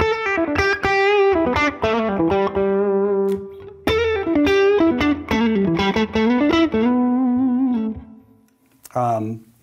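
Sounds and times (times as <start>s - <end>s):
electric guitar through a gain pedal playing overdriven chords and riffs: 0.0s - 8.5s.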